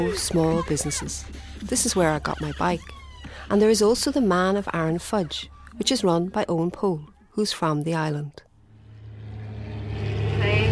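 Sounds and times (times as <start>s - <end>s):
speech: 0.0s - 8.4s
small propeller plane engine coming in to land: 8.8s - 10.7s.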